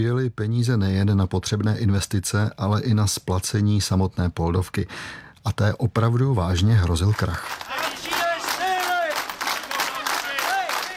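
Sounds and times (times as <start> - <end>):
speech: 0.0 - 8.0
protesting workers' crowd chant: 7.7 - 10.9.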